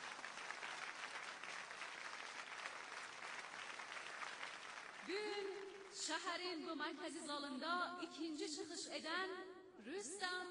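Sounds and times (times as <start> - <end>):
audience applause for a professor after his lecture in a city hall: 0.0 - 6.0
speech: 5.1 - 10.5.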